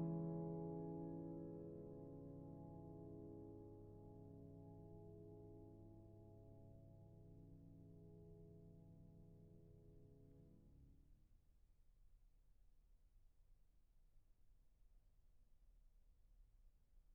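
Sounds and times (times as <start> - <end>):
prelude: 0.0 - 7.0.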